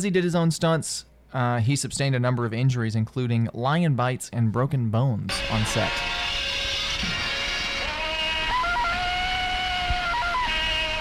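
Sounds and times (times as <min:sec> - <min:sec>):
speech: 0:00.0 - 0:06.4
classic jungle man yell: 0:05.4 - 0:10.9.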